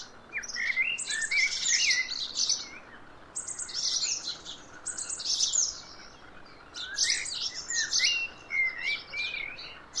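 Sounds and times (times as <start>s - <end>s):
Eurasian blackbird Turdus merula singing: 0.0s - 9.9s.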